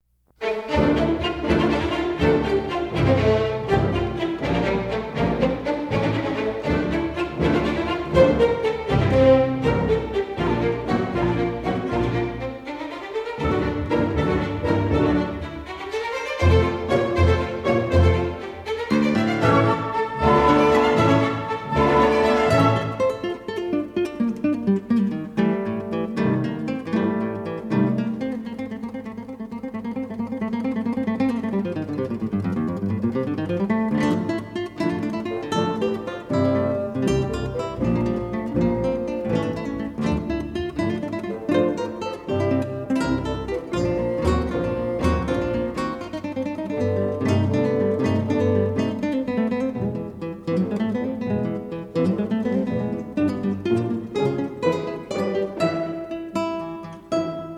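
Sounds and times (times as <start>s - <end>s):
concerto in D for guitar and orchestra: 0.2s - 57.5s.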